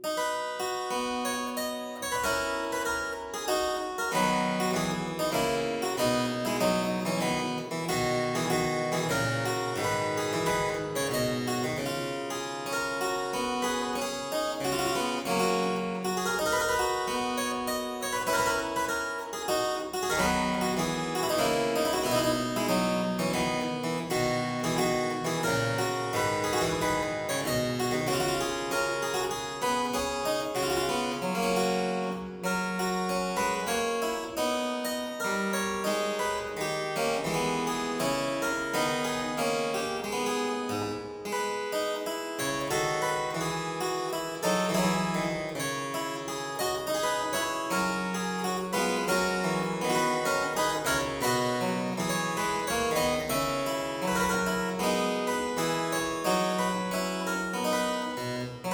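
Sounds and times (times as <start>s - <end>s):
harpsichord aria variation in C major: 0.0s - 58.7s.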